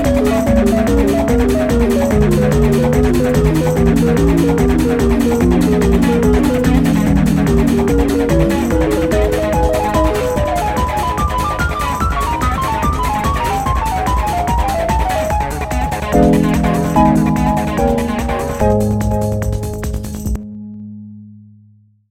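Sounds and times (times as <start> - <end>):
acid trance music: 0.0 - 20.4.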